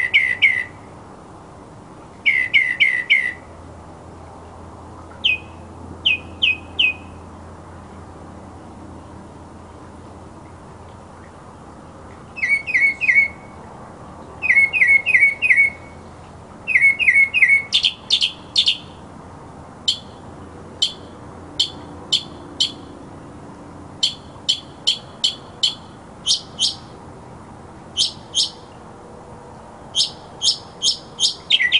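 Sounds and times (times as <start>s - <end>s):
mockingbird song: 0.0s - 0.8s, 2.2s - 3.5s, 5.1s - 7.2s, 12.2s - 19.0s, 19.9s - 20.2s, 20.8s - 22.9s, 24.0s - 27.0s, 27.9s - 28.8s, 29.9s - 31.7s.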